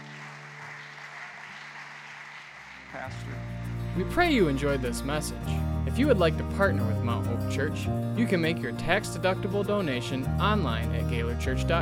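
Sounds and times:
audience clapping: 0.0s - 4.1s
speech: 2.9s - 11.8s.

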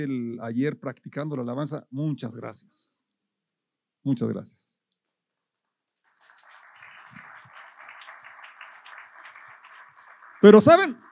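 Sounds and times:
speech: 0.0s - 3.0s, 4.0s - 4.7s, 10.4s - 11.0s
audience applauding: 6.0s - 11.0s.

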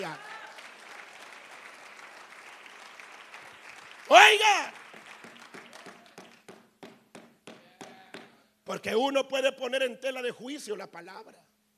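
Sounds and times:
audience clapping: 0.0s - 8.3s
speech: 4.1s - 4.8s, 8.7s - 11.5s.

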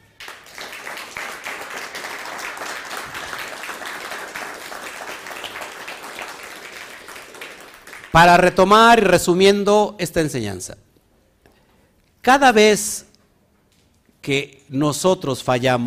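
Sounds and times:
crowd applause: 0.0s - 8.5s
speech: 8.2s - 10.8s, 12.2s - 13.1s, 14.3s - 15.8s.

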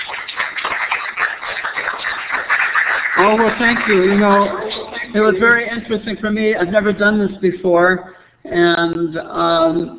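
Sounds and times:
crowd clapping: 0.0s - 5.2s
speech: 3.2s - 4.6s, 5.2s - 9.9s.

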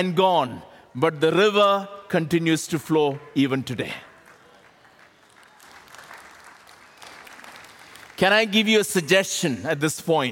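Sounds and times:
speech: 0.0s - 4.1s, 8.2s - 10.3s
audience clapping: 4.2s - 9.0s.

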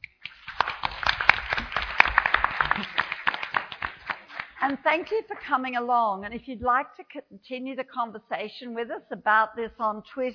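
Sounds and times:
audience applause: 0.2s - 5.2s
speech: 4.6s - 10.3s.

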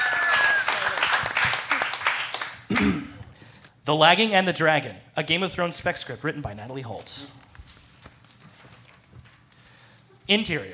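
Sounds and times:
loud round of applause: 0.0s - 2.7s
speech: 2.8s - 3.0s, 3.9s - 7.4s, 10.3s - 10.7s.

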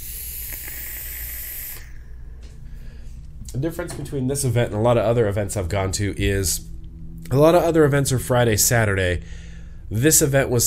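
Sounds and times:
airy hiss of a vape inhalation: 0.0s - 2.2s
low constant hum: 0.0s - 10.6s
speech: 3.5s - 6.7s, 7.3s - 10.6s.

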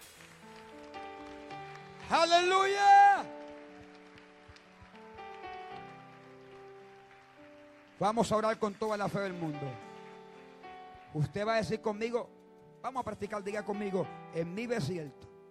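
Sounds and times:
audience applauding: 0.0s - 11.9s
speech: 2.1s - 3.3s, 8.0s - 9.9s, 11.1s - 15.2s.

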